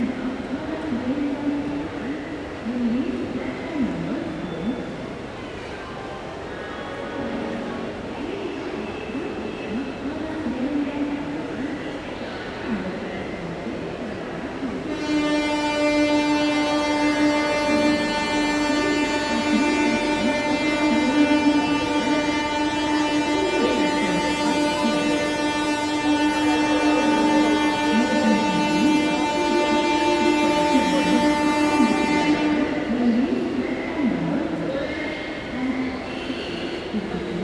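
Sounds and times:
crowd at a train station in North India: 0.0s - 37.4s
train station announcement in North India: 0.0s - 37.4s
train horn in North India: 6.8s - 8.2s, 14.8s - 34.0s.

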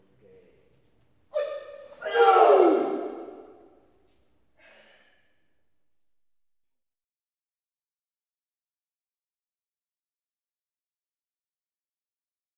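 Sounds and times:
karate class approaching: 1.3s - 3.8s.

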